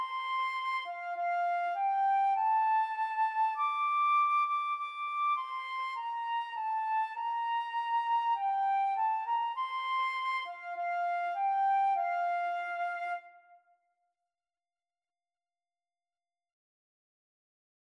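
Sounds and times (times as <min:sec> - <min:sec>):
flute: 0:00.0 - 0:13.8.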